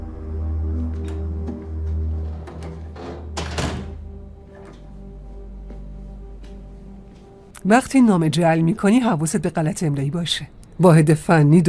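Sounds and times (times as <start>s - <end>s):
steady low hum: 0.0s - 11.6s
door closing with a muffled thud: 2.4s - 4.1s
speech: 7.6s - 11.6s.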